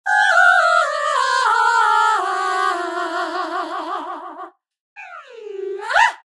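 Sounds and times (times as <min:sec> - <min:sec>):
person singing: 0:00.1 - 0:04.6.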